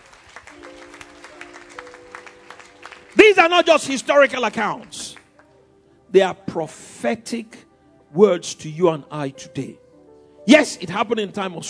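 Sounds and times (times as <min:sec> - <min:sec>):
congregation clapping in a church service: 0:00.0 - 0:05.5
speech: 0:03.2 - 0:05.0, 0:06.1 - 0:09.8, 0:10.4 - 0:11.6.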